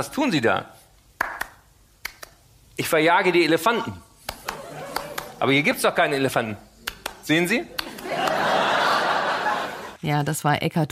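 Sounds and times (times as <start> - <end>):
speech: 0.0 - 0.8, 2.8 - 4.0, 5.4 - 8.5, 10.0 - 10.8
man clapping hands: 1.2 - 2.4, 4.2 - 5.4, 6.8 - 8.5
laughter: 4.4 - 6.1, 7.7 - 10.0.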